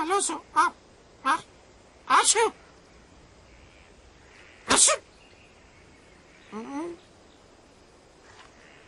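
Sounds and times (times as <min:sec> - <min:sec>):
speech: 0:00.1 - 0:01.5, 0:02.3 - 0:02.6, 0:04.8 - 0:05.0
sneeze: 0:04.7 - 0:05.0.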